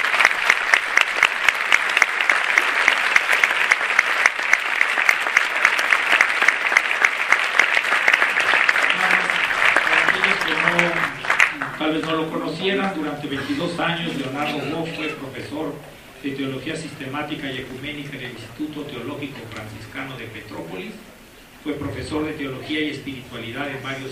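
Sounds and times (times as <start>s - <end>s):
audience applause: 0.0s - 13.0s
speech: 12.6s - 24.0s.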